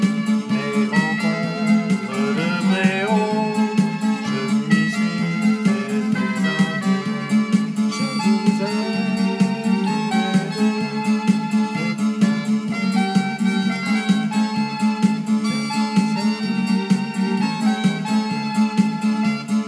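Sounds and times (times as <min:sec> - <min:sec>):
jingle: 0:00.1 - 0:19.6.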